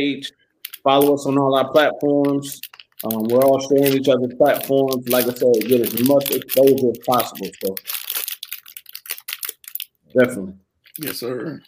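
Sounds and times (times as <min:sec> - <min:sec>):
speech: 0:00.0 - 0:08.0, 0:10.1 - 0:11.6
plastic bag being handled, crinkling and rustling: 0:00.6 - 0:10.1, 0:10.8 - 0:11.6.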